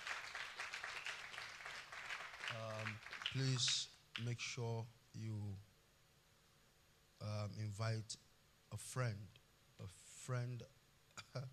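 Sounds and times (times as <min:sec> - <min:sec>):
audience clapping: 0:00.0 - 0:04.4
speech: 0:02.5 - 0:05.7, 0:07.2 - 0:11.5.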